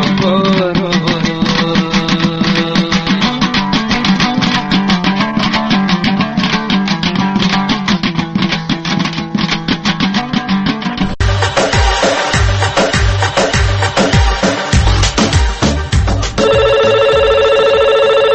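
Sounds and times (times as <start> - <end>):
rhythmic music with a strong beat: 0.0 - 18.3
telephone ringing with a listener's incoming call: 16.4 - 18.3.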